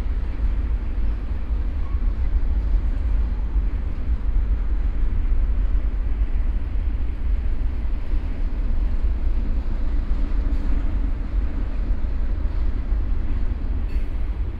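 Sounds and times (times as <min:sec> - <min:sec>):
freight train: 0:00.0 - 0:14.5.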